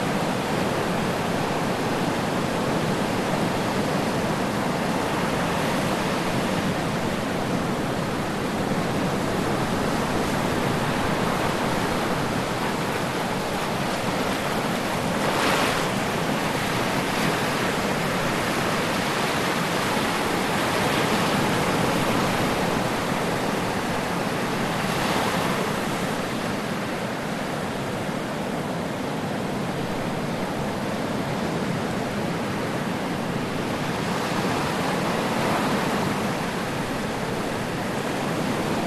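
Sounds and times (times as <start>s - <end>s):
ocean surf waves on shore: 0.0s - 38.8s.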